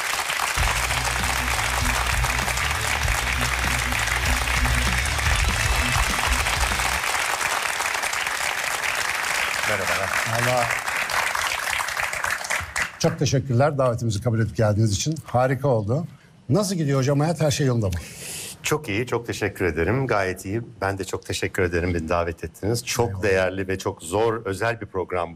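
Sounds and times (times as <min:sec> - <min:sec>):
audience applause: 0:00.0 - 0:13.0
low musical tone: 0:00.6 - 0:07.0
speech: 0:09.7 - 0:10.9, 0:13.0 - 0:25.3.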